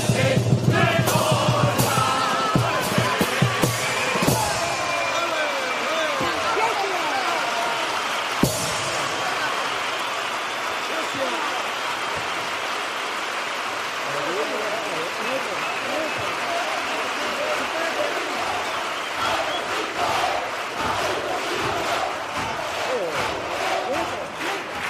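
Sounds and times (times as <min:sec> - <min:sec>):
standing audience applauding: 0:00.0 - 0:24.8.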